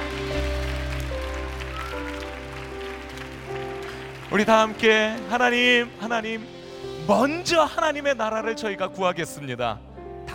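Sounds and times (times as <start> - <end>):
audience applause: 0.0 - 6.0
speech: 4.3 - 9.9.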